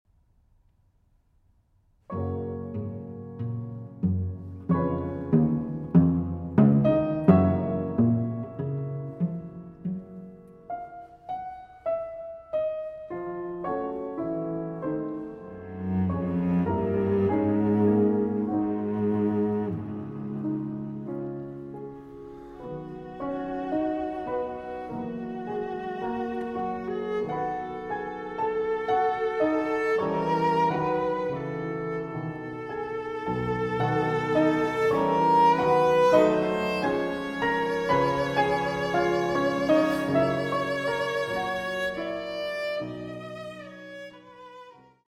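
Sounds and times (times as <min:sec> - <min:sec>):
cello sonata adagio affettuoso: 0:02.0 - 0:45.0.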